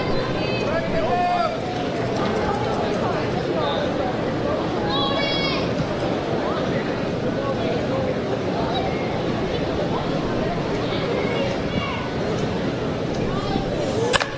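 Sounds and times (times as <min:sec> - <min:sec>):
steady crowd noise: 0:00.0 - 0:14.3
bat striking a baseball solidly during a game: 0:13.8 - 0:14.3.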